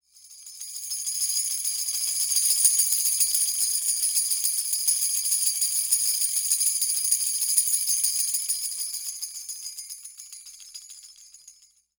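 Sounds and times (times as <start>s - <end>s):
East Indian tambourine shaker: 0.0s - 11.9s.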